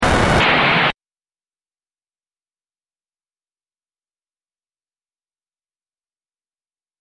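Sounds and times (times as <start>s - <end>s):
phase shifted noise: 0.0s - 1.0s.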